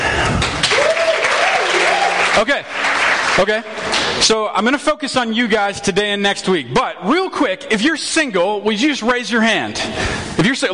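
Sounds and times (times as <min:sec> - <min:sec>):
crowd applauding: 0:00.3 - 0:04.2
speech: 0:02.4 - 0:02.8, 0:03.4 - 0:10.7.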